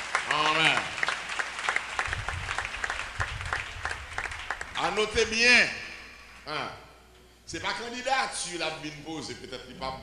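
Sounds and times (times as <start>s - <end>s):
audience applauding: 0.0s - 5.2s
speech: 4.9s - 5.8s, 6.4s - 6.8s, 7.5s - 10.0s.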